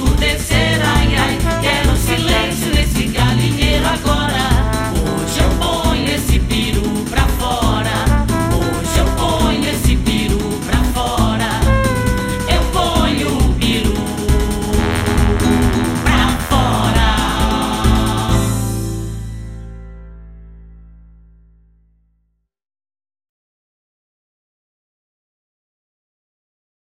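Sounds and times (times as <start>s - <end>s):
march music: 0.0s - 19.8s.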